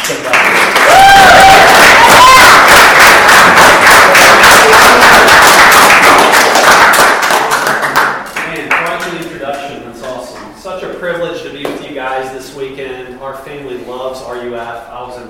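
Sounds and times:
conference audience applause welcoming a speaker: 0:00.0 - 0:08.2
audience members whooping: 0:00.8 - 0:05.3.

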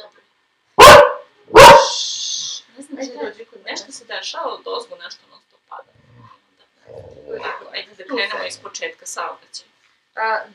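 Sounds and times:
dog barking: 0:00.8 - 0:02.0
speech: 0:03.6 - 0:05.3, 0:08.0 - 0:10.5.

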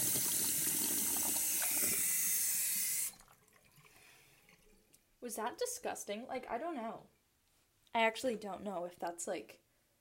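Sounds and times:
water running from a sink tap: 0:00.0 - 0:03.9
speech: 0:05.2 - 0:07.2, 0:07.9 - 0:09.6.

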